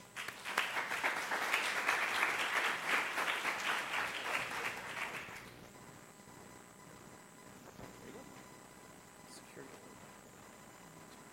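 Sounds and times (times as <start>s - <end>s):
audience applauding to welcome a speaker: 0.0s - 5.5s.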